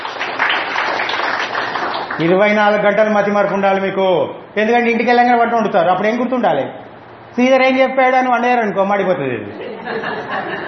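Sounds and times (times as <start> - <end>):
audience applause at a talk: 0.0 - 2.2
speech: 2.2 - 6.8, 7.4 - 10.6
laughter: 9.6 - 10.6.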